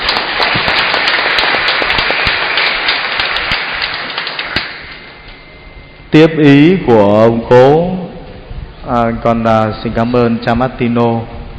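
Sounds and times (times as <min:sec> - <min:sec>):
crowd applause: 0:00.0 - 0:05.0
speech: 0:06.1 - 0:08.1, 0:08.8 - 0:11.4.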